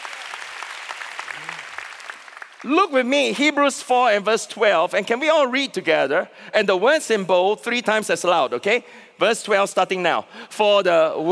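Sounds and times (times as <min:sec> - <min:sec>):
audience applause: 0:00.0 - 0:02.7
speech: 0:02.6 - 0:11.3.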